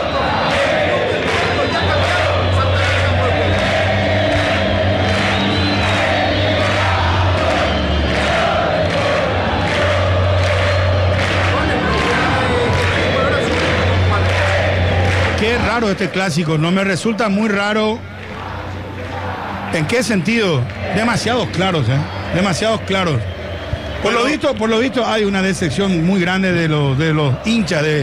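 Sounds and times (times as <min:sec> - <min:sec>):
Cerro Porteño football fans in a stadium during a clásico against Olimpia: 0:00.0 - 0:16.0, 0:18.1 - 0:19.8
speech: 0:15.8 - 0:18.2, 0:19.7 - 0:23.3, 0:24.0 - 0:28.0.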